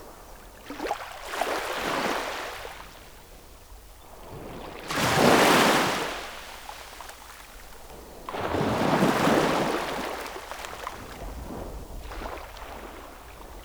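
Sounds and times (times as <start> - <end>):
waves: 0.0 - 13.6.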